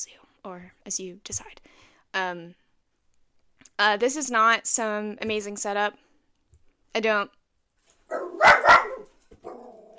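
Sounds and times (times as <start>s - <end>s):
speech: 0.0s - 2.6s, 3.7s - 6.0s, 6.9s - 7.4s
dogs barking: 8.1s - 9.9s.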